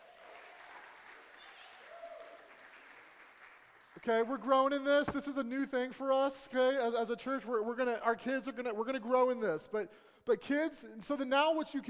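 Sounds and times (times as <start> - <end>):
church audience clapping: 0.0 - 5.1
speech: 4.0 - 11.8.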